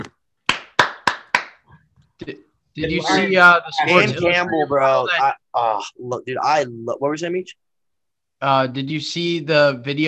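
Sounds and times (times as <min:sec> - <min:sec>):
polite golf clap: 0:00.0 - 0:01.9
speech: 0:02.2 - 0:07.6, 0:08.4 - 0:10.0.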